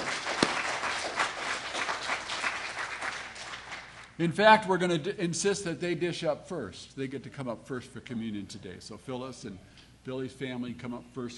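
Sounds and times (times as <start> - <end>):
round of applause: 0.0 - 4.2
speech: 4.2 - 11.3.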